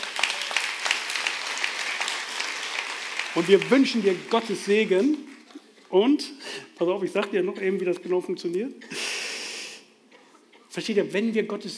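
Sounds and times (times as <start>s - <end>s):
audience applause: 0.0s - 5.6s
speech: 3.4s - 9.2s, 10.8s - 11.7s.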